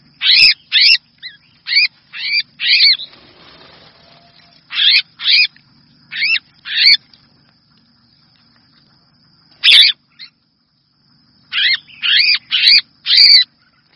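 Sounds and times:
red-whiskered bulbul distress call: 0.0 - 5.5, 6.1 - 7.0, 9.6 - 10.4, 11.4 - 13.9.

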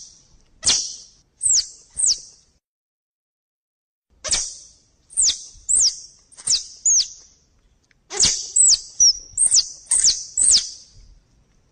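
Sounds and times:
squirrel chirps: 0.0 - 2.3, 4.2 - 7.3, 8.1 - 11.0.

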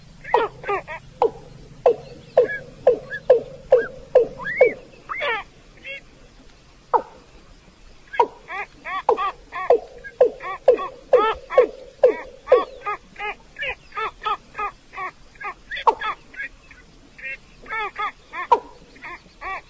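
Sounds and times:
rail nasal calls: 0.0 - 6.1, 8.1 - 19.6.

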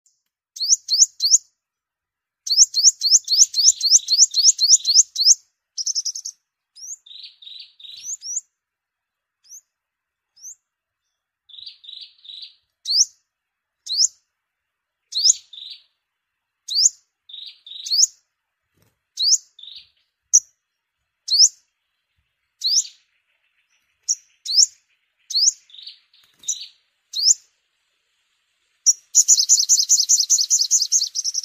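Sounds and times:
sunbird chips and whistles: 2.4 - 8.6, 9.4 - 14.3, 15.0 - 16.0, 16.6 - 18.3, 19.2 - 31.4.

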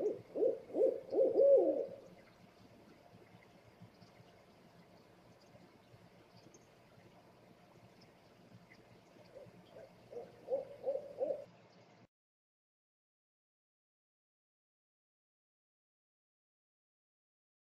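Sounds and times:
owl hooting: 0.0 - 2.0, 9.3 - 11.5
background hiss: 0.0 - 12.1.

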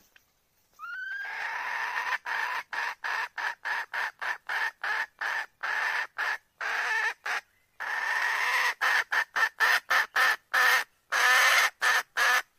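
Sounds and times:
red junglefowl calling: 0.8 - 12.5.

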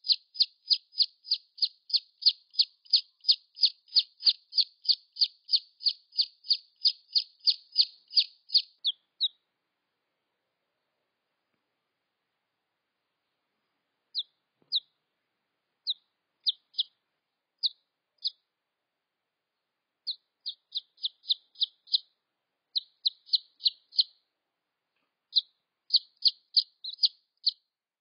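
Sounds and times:
red junglefowl chick peeps: 0.0 - 9.4, 14.1 - 15.0, 15.8 - 17.0, 17.6 - 18.4, 20.0 - 22.1, 22.7 - 24.2, 25.3 - 27.6.

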